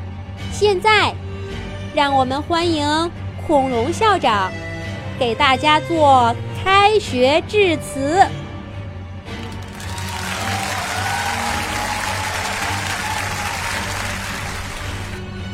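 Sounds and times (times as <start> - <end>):
speech: 0.4 - 1.2, 2.0 - 8.4
applause: 9.4 - 15.3.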